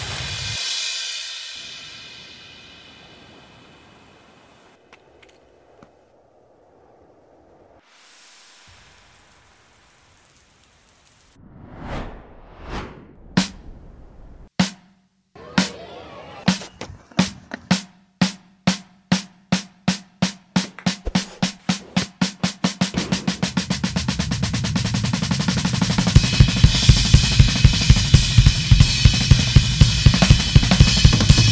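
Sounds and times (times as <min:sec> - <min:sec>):
drums: 0:00.0 - 0:03.6, 0:13.0 - 0:31.4.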